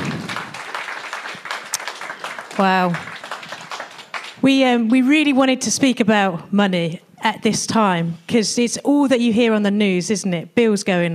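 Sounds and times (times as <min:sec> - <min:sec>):
audience clapping: 0:00.0 - 0:04.9
speech: 0:02.6 - 0:03.1, 0:04.4 - 0:11.1.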